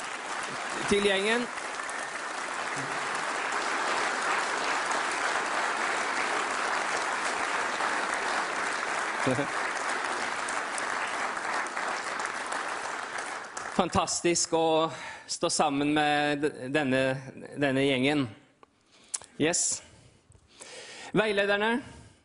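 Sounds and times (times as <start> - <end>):
audience applause: 0.0 - 14.4
speech: 0.8 - 1.6, 2.8 - 3.0, 9.2 - 9.6, 13.8 - 18.4, 19.4 - 19.9, 21.2 - 22.0.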